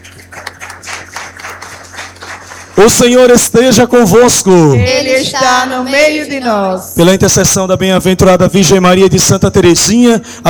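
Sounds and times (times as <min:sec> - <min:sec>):
worshippers clapping for visitors at a church service: 0:00.0 - 0:02.8
low steady hum: 0:00.0 - 0:10.4
speech: 0:02.8 - 0:10.4.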